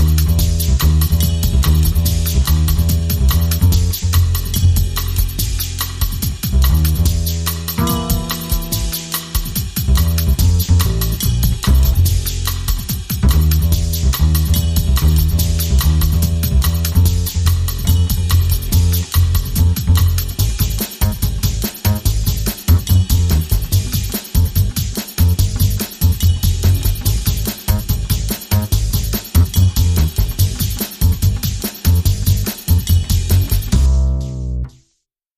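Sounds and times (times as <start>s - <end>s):
drum and bass music: 0.0s - 34.8s.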